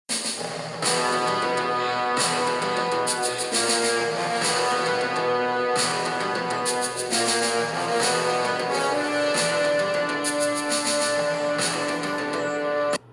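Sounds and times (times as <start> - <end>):
music: 0.1 - 13.1.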